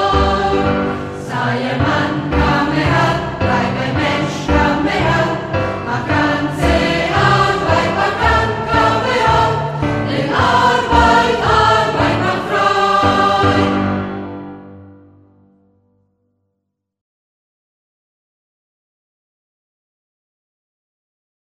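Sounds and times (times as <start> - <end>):
song: 0.0 - 15.5.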